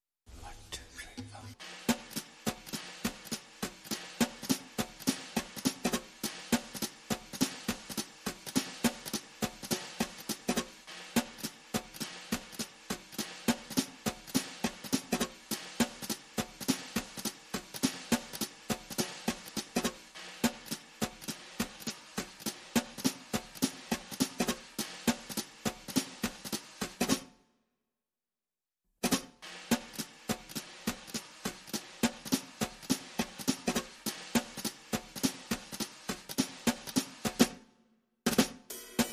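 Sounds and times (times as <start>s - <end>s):
drums: 0.2s - 27.5s, 29.0s - 39.1s.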